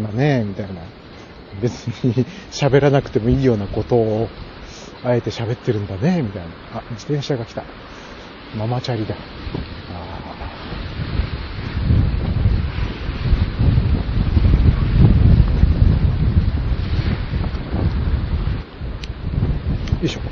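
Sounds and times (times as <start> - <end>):
speech: 0.0 - 9.7, 20.0 - 20.3
strong wind blowing on the microphone: 0.0 - 20.3.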